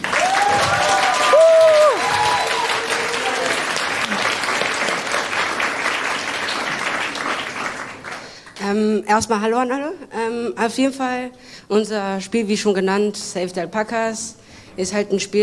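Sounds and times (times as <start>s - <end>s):
audience applause: 0.0s - 8.6s
whistle-like cheer: 0.1s - 3.7s
speech: 9.0s - 15.4s.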